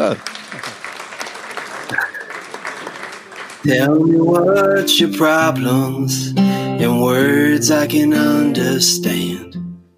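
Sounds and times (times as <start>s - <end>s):
speech: 0.0s - 0.6s, 3.6s - 9.6s
audience applause: 0.0s - 3.7s.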